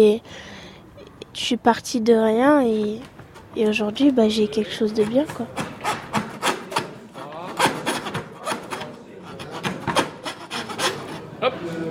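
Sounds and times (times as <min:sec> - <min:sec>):
speech: 0:00.0 - 0:00.5, 0:01.4 - 0:05.7
hand saw cutting wood: 0:04.9 - 0:11.3.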